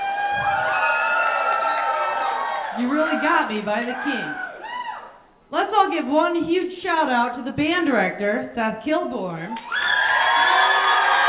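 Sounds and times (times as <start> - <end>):
audience screaming and cheering: 0.0 - 5.2, 9.6 - 11.2
speech: 2.8 - 4.4, 5.5 - 9.8.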